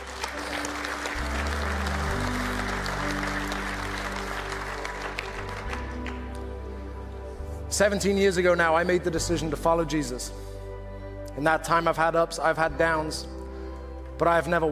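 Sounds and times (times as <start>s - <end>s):
audience clapping: 0.0s - 6.7s
speech: 7.8s - 10.4s, 11.4s - 13.4s, 14.2s - 14.7s.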